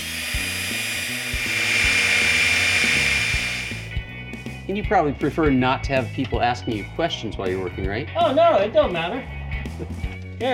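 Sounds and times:
power drill boring into a steel safe: 0.0s - 3.9s
speech: 4.8s - 10.5s.

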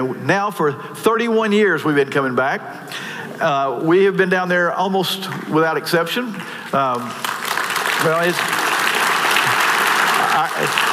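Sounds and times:
speech: 0.0s - 7.3s, 8.0s - 8.6s
audience applause: 6.9s - 10.9s.

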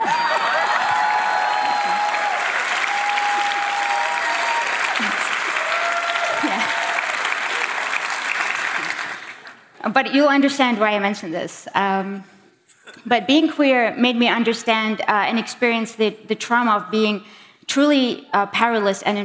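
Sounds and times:
audience applause: 0.0s - 9.7s
speech: 9.8s - 12.3s, 13.0s - 19.2s.

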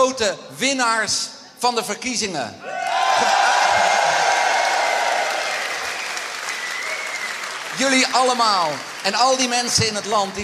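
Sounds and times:
speech: 0.1s - 4.2s, 7.8s - 10.4s
large crowd cheering and applauding: 2.7s - 10.4s.

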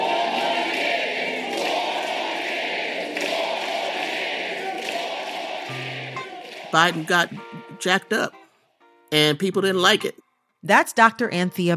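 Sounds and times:
large crowd chanting in unison at a rally: 0.0s - 7.9s
speech: 6.7s - 8.4s, 9.1s - 11.7s.

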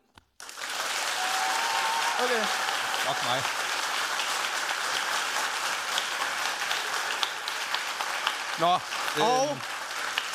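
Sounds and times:
crowd applause: 0.4s - 10.3s
speech: 2.2s - 3.6s, 8.6s - 9.7s.

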